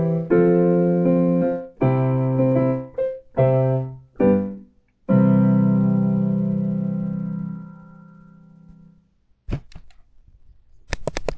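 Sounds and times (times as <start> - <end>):
musical accompaniment: 0.0 - 8.9.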